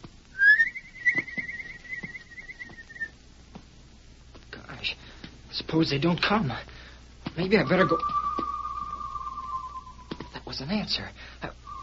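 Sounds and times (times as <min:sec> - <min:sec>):
whistled signal call: 0:00.4 - 0:03.1, 0:07.6 - 0:10.4, 0:11.6 - 0:11.8
speech: 0:05.7 - 0:06.7, 0:07.4 - 0:08.2, 0:10.6 - 0:11.4.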